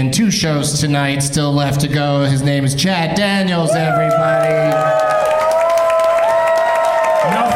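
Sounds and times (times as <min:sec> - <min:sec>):
speech: 0:00.0 - 0:05.2
audience clapping loudly: 0:03.9 - 0:07.5.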